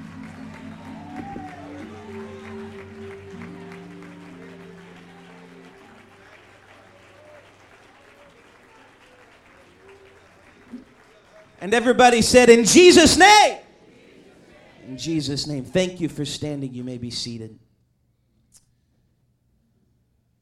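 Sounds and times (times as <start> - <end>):
people clapping hands: 0.0 - 13.4
people shouting: 0.9 - 2.8
speech: 11.6 - 13.6, 15.0 - 17.6.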